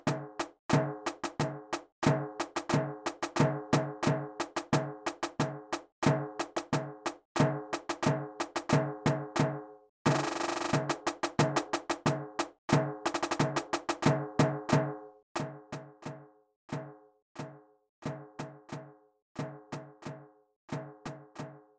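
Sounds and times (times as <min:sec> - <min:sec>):
rhythm: 0:00.0 - 0:16.9.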